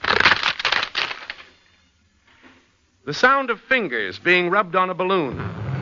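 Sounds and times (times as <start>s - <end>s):
wooden fruit boxes being broken: 0.0s - 1.5s
speech: 3.1s - 5.6s.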